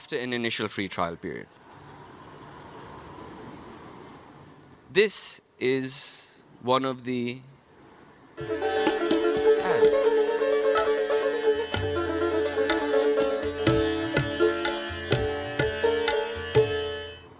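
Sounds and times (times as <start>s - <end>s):
speech: 0.1s - 1.6s, 4.9s - 7.5s, 8.4s - 9.0s
sitar played solo: 8.4s - 17.3s.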